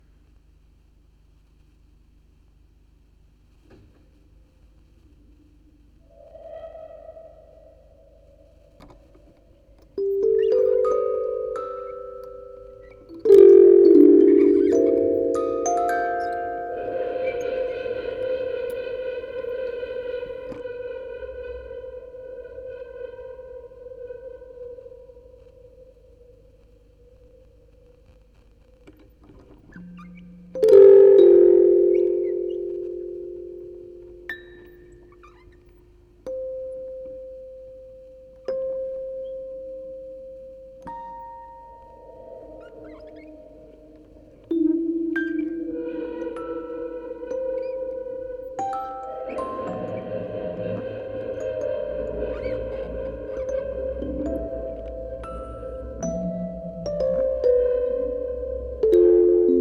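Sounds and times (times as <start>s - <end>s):
quartet of music boxes playing: 9.9s - 20.6s, 30.5s - 35.2s, 36.3s - 59.5s.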